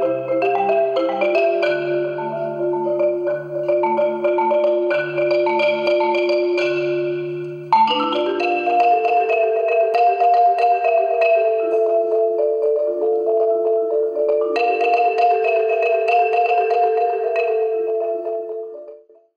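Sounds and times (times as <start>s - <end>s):
marimba: 0.0s - 19.3s.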